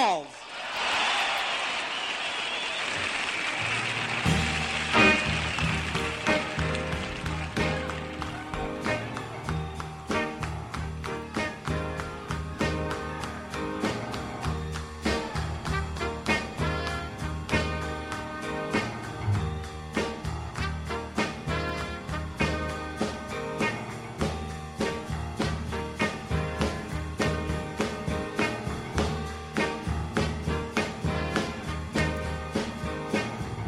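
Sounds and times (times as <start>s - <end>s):
crowd applauding welcoming a performer: 0.3s - 23.2s
band playing with a strong, regular drumbeat: 3.1s - 33.6s.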